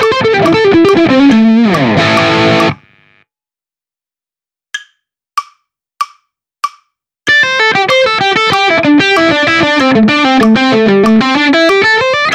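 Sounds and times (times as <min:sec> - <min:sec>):
dynamic rock hybrid picking pentatonic: 0:00.0 - 0:02.9, 0:07.3 - 0:12.3.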